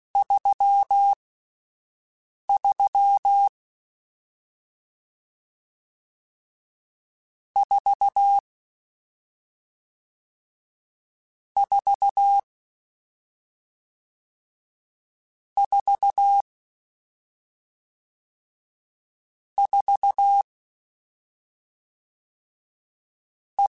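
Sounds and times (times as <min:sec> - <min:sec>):
Morse code CW code groups: 0:00.2 - 0:01.2, 0:02.6 - 0:03.5, 0:07.6 - 0:08.4, 0:11.6 - 0:12.4, 0:15.6 - 0:16.4, 0:19.6 - 0:20.4.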